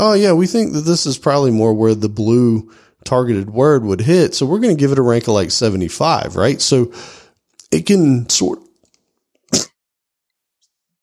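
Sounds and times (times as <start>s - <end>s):
speech: 0.0s - 8.7s
cough: 9.5s - 9.8s.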